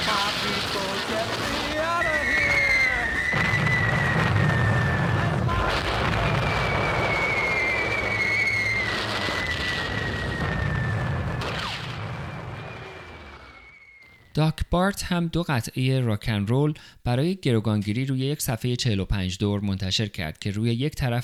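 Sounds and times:
war sounds of bombing booms and blasts: 0:00.0 - 0:13.7
long high whistle falling in pitch: 0:01.7 - 0:14.3
speech: 0:14.5 - 0:21.2.

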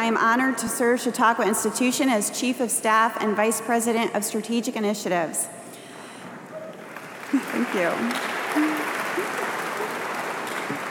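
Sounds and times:
speech: 0:00.1 - 0:05.6, 0:07.3 - 0:08.8
audience applause: 0:06.8 - 0:10.8.

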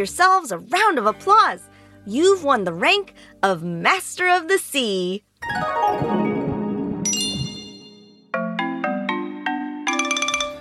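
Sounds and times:
speech: 0:00.0 - 0:06.3
closing jingle music: 0:05.4 - 0:08.3, 0:09.9 - 0:10.5.

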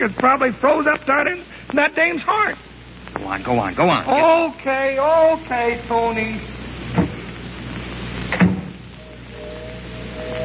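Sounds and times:
speech: 0:00.0 - 0:07.1
train whistle blowing: 0:09.0 - 0:10.4.

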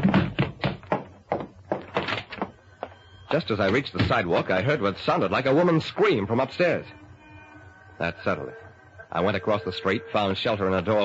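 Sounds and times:
man shoved down a flight of stairs: 0:00.0 - 0:03.0
speech: 0:03.3 - 0:07.0, 0:08.0 - 0:11.0.

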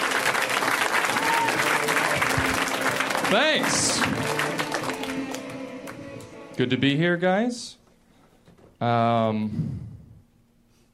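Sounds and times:
audience applauding a comedian: 0:00.0 - 0:06.4
speech: 0:03.3 - 0:04.4, 0:06.6 - 0:07.8, 0:08.8 - 0:09.8.

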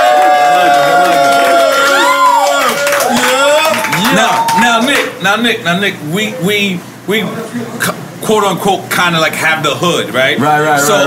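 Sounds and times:
shouts and whoops: 0:00.0 - 0:05.0
studio audience cheering: 0:00.0 - 0:05.2
clapping: 0:00.1 - 0:05.1
speech: 0:04.8 - 0:11.0.

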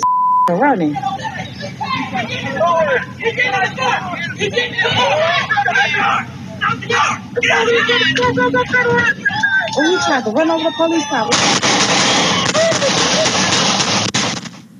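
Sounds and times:
speech: 0:00.5 - 0:12.3
laughter: 0:00.8 - 0:13.8
police gunshots on doorbell camera video: 0:11.2 - 0:14.7.

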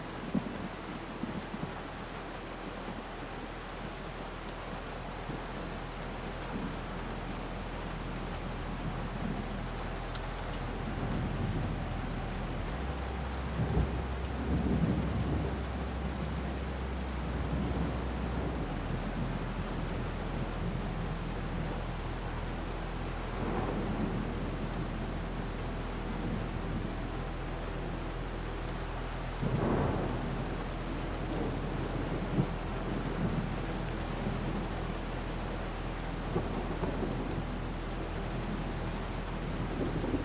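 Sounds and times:
steady hiss of rain: 0:00.0 - 0:40.2
thunder rumbling low and rolling: 0:10.4 - 0:21.8, 0:23.2 - 0:27.2, 0:29.3 - 0:34.9, 0:36.2 - 0:40.2.

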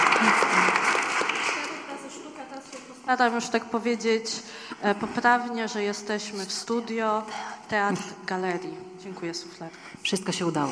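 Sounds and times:
audience applause: 0:00.0 - 0:02.0
speech: 0:03.1 - 0:10.7.

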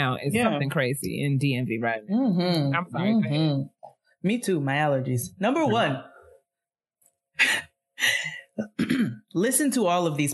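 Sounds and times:
speech: 0:00.0 - 0:06.1, 0:07.4 - 0:10.3
person coughing: 0:08.3 - 0:09.2.

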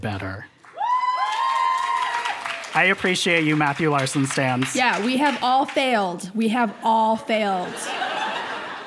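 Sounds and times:
speech: 0:00.0 - 0:00.6, 0:02.8 - 0:08.1
audience applause: 0:00.6 - 0:06.0
crowd whoops or whistles: 0:00.8 - 0:02.6
laughter: 0:06.6 - 0:08.8.

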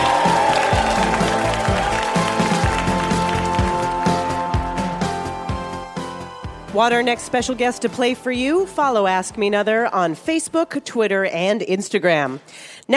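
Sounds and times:
audience applause and cheering for an actress guest at a live game show: 0:00.0 - 0:06.6
speech: 0:06.8 - 0:12.9.

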